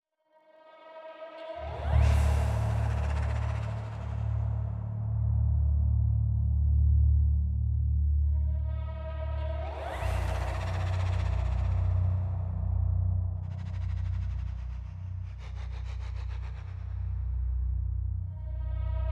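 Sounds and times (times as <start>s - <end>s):
level ambience: 1.6s - 19.1s.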